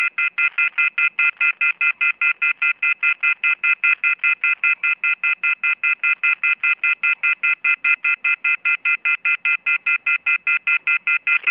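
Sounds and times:
off-the-hook phone tone: 0.0 - 11.5.

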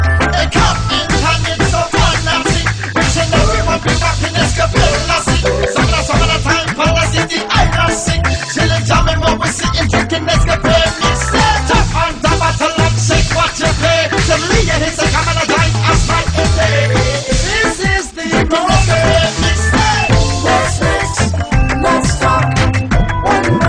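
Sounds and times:
rap mix ringtone: 0.0 - 23.6.

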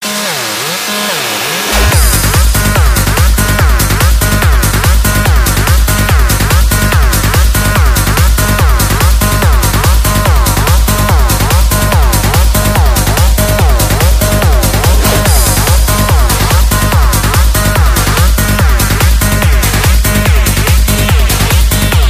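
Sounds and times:
psytrance music: 0.0 - 22.0.

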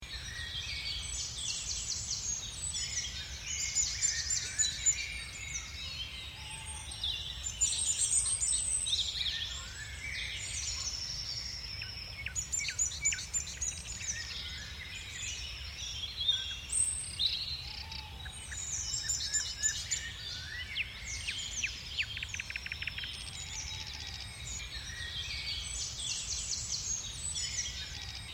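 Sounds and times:
bird: 0.0 - 28.3.

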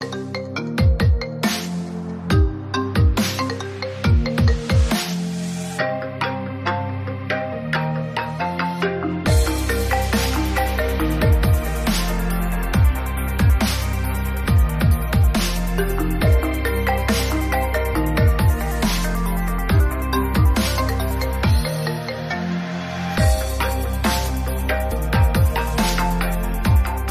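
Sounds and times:
iPhone 8 original ringtone: 2.3 - 27.0.

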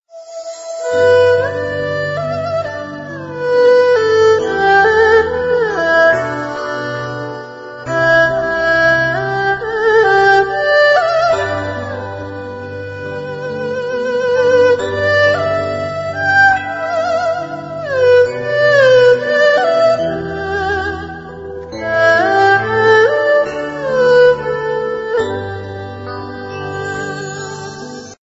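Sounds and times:
Asian instrumental music: 0.0 - 28.2.

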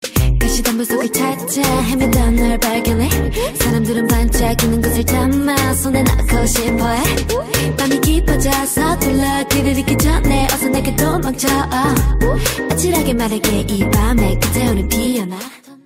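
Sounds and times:
rap music: 0.0 - 15.7.

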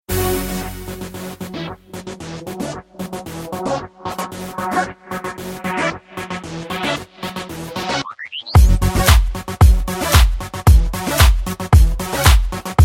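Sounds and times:
club beats: 8.6 - 12.8.

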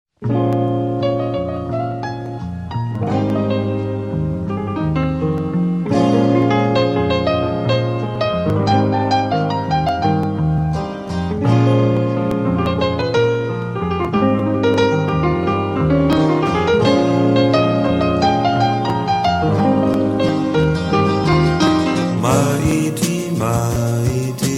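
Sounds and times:
simple song: 0.3 - 24.5.

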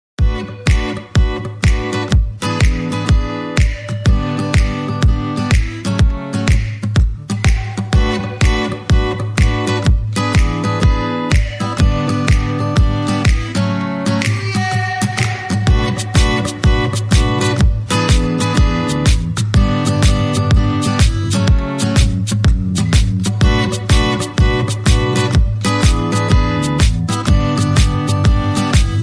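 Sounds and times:
guitar playing: 0.2 - 29.0.

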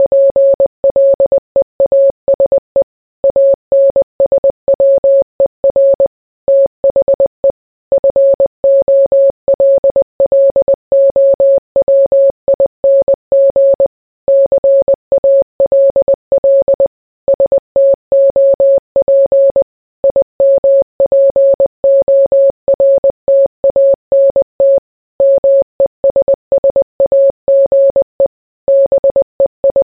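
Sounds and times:
morse code beeps: 0.0 - 2.6, 3.3 - 29.9.

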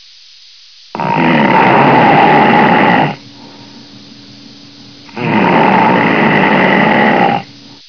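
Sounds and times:
person snoring: 1.0 - 3.3, 5.1 - 7.6.

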